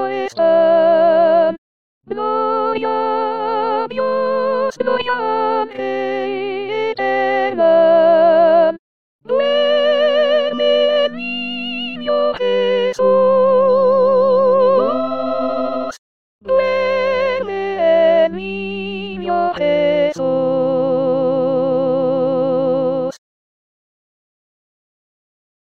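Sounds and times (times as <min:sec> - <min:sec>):
soprano singing: 0:00.0 - 0:23.2.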